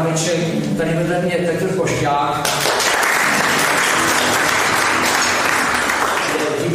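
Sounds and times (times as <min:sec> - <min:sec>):
speech: 0:00.2 - 0:02.7
audience clapping: 0:02.4 - 0:06.6.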